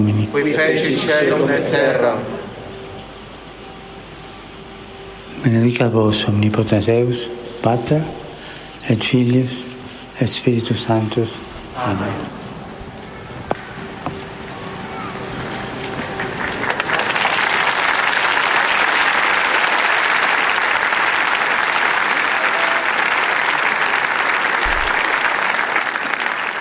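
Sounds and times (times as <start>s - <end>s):
speech: 0.0s - 2.4s, 5.4s - 8.2s, 8.8s - 12.4s
storm of applause from pilgrims: 15.9s - 26.5s.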